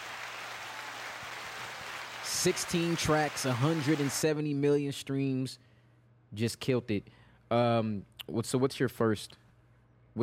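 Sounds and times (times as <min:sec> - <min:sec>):
applause: 0:00.0 - 0:04.3
speech: 0:02.4 - 0:05.7, 0:06.3 - 0:09.4.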